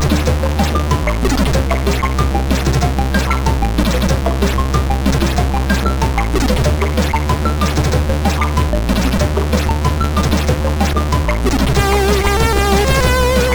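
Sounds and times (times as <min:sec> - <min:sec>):
birthday song on SID CSG8580R5 sound chip: 0:00.0 - 0:13.5.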